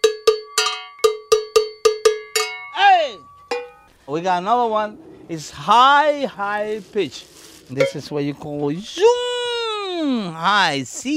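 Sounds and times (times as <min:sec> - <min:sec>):
low-pitched welded bell being rung: 0:00.0 - 0:05.7, 0:07.8 - 0:08.1
speech: 0:04.1 - 0:09.3, 0:10.0 - 0:11.1.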